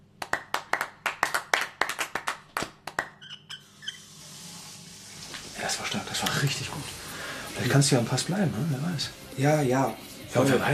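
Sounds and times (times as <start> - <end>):
team clapping: 0.0 - 3.2
speech: 5.7 - 10.7.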